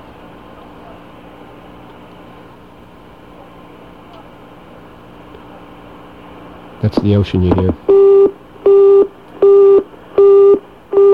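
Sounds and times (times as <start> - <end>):
speech: 6.8 - 7.9
telephone busy signal: 7.9 - 11.1.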